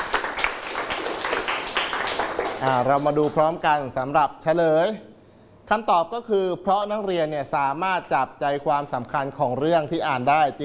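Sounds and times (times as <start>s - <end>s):
students clapping in a classroom: 0.0s - 3.4s
speech: 2.6s - 5.1s, 5.7s - 10.6s.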